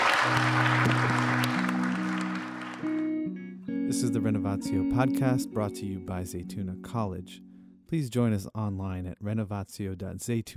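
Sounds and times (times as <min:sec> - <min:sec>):
audience round of applause: 0:00.0 - 0:03.2
speech: 0:04.0 - 0:10.5.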